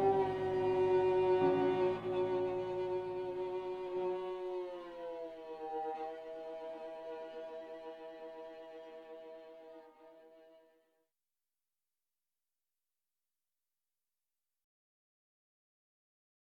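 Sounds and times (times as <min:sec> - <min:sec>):
drone: 0:00.0 - 0:09.6.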